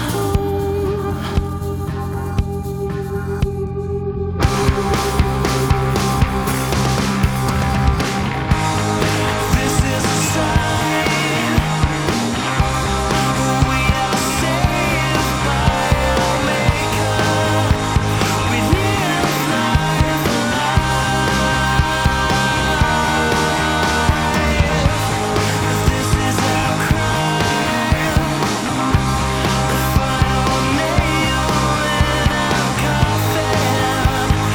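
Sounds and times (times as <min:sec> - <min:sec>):
multi distorted sound: 0:00.0 - 0:34.5.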